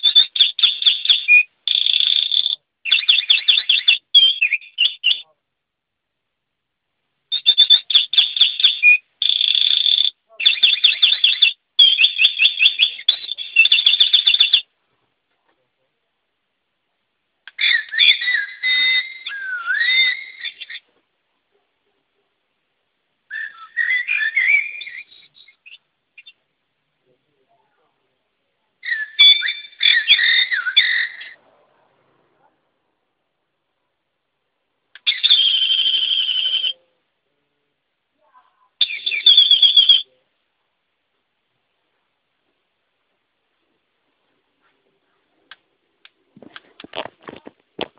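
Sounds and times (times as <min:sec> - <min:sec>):
English bird: 0:00.0 - 0:05.4, 0:07.3 - 0:14.7, 0:17.5 - 0:21.0, 0:23.3 - 0:26.5, 0:28.8 - 0:31.4, 0:35.0 - 0:36.9, 0:38.3 - 0:40.2.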